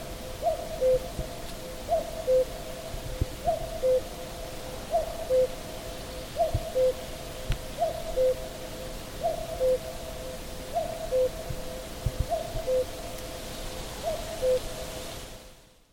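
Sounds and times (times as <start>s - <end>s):
Cuculus cuckoo singing: 0.4s - 1.2s, 1.8s - 2.6s, 3.4s - 4.1s, 4.9s - 5.6s, 6.4s - 7.1s, 7.7s - 8.5s, 9.2s - 13.3s, 14.0s - 14.8s.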